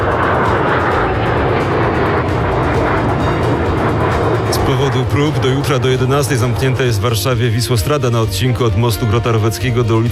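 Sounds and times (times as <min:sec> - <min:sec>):
military aircraft flying overhead: 0:00.0 - 0:10.1
speech: 0:05.0 - 0:10.1.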